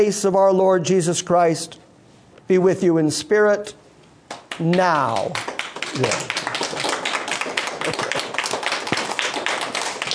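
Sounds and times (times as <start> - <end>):
speech: 0.0 - 1.9, 2.5 - 3.8, 4.6 - 6.4
audience applauding: 4.3 - 10.1.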